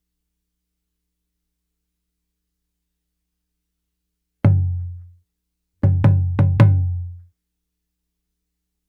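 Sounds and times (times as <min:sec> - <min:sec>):
African tambora drum: 0:04.5 - 0:05.1, 0:05.8 - 0:07.2.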